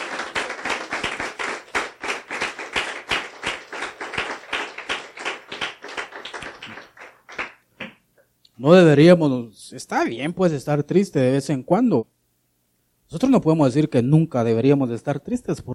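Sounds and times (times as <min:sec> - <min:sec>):
audience clapping: 0:00.0 - 0:08.0
speech: 0:08.6 - 0:12.1, 0:13.1 - 0:15.7.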